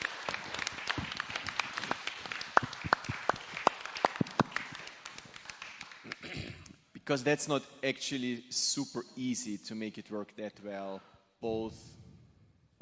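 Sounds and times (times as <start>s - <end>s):
audience applause: 0.0s - 6.3s
speech: 7.1s - 12.0s.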